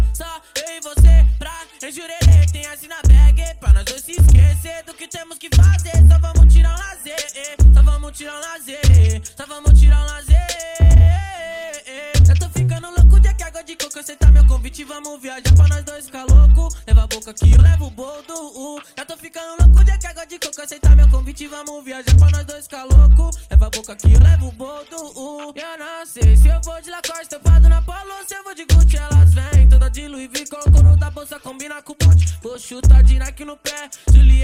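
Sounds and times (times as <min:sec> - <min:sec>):
deep bass: 0:00.0 - 0:00.2, 0:01.0 - 0:01.5, 0:02.2 - 0:04.7, 0:05.6 - 0:06.9, 0:07.6 - 0:08.0, 0:08.8 - 0:11.3, 0:12.2 - 0:13.4, 0:14.2 - 0:14.7, 0:15.5 - 0:17.9, 0:19.6 - 0:20.1, 0:20.8 - 0:21.3, 0:22.1 - 0:24.6, 0:26.2 - 0:26.7, 0:27.5 - 0:27.9, 0:28.7 - 0:30.0, 0:30.7 - 0:31.2, 0:32.0 - 0:33.4, 0:34.1 - 0:34.4.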